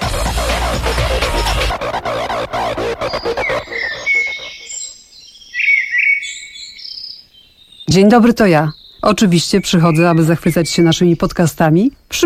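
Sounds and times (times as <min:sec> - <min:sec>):
loud dense burst of sound: 0:00.0 - 0:04.7
bright birdsong with warbling chirps and trills: 0:02.9 - 0:12.1
speech: 0:08.0 - 0:12.2.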